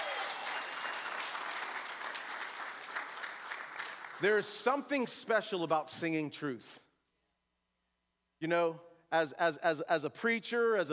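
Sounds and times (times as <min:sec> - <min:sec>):
audience applauding with hand claps: 0:00.0 - 0:04.9
speech: 0:04.2 - 0:06.8, 0:08.4 - 0:10.9.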